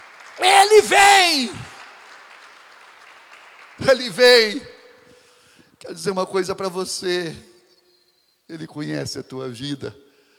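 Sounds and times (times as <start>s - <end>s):
audience applause: 0.0s - 4.6s
speech: 0.4s - 1.6s, 3.9s - 4.7s, 5.8s - 7.5s, 8.5s - 10.0s.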